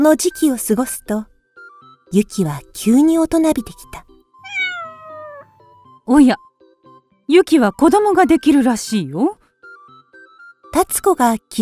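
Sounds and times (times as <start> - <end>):
speech: 0.0 - 1.3, 2.1 - 4.1, 6.1 - 6.5, 7.3 - 9.4, 10.7 - 11.6
cat meowing: 4.4 - 5.6.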